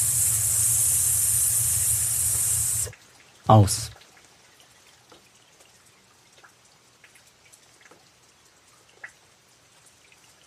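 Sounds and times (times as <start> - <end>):
low hum: 0.0 - 2.9
person exhaling on a voiceless S hiss: 0.0 - 2.9
speech: 3.5 - 4.0.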